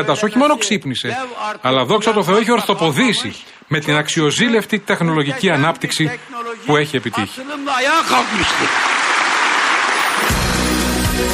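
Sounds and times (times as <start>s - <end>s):
speech: 0.0s - 9.0s
audience applause: 5.5s - 11.3s.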